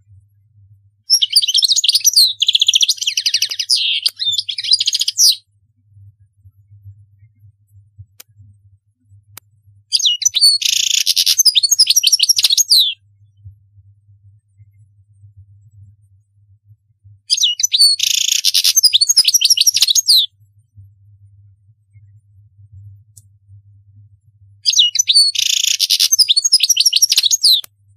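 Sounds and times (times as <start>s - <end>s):
European goldfinch singing: 1.1s - 5.4s, 10.0s - 13.0s, 17.4s - 20.3s, 24.7s - 27.6s.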